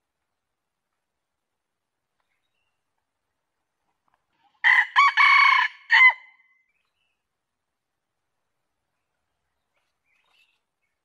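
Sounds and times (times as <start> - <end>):
junglefowl crowing: 4.6 - 6.3.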